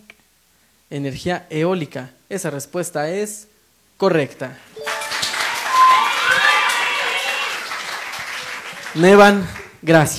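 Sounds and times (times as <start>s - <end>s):
speech: 0.9s - 4.7s, 9.0s - 10.1s
audience applause: 4.8s - 10.1s.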